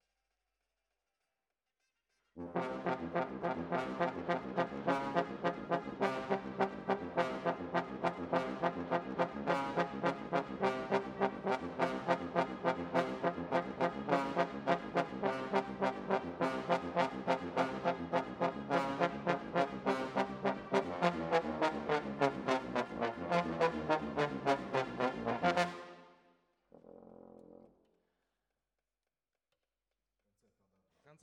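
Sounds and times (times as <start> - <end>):
trombones: 2.4 - 26.1.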